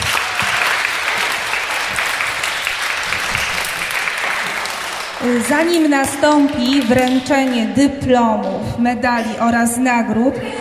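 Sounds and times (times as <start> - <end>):
audience applause: 0.0 - 7.6
speech: 5.2 - 10.6.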